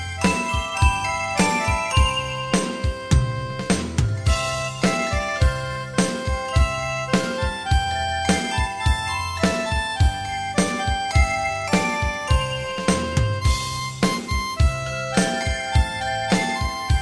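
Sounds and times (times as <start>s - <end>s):
beat music: 0.0s - 17.0s.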